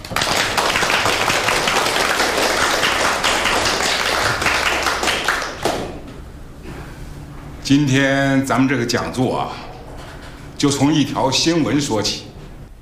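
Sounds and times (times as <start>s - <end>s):
warm audience applause: 0.0s - 6.0s
speech: 7.7s - 9.6s, 10.6s - 12.2s.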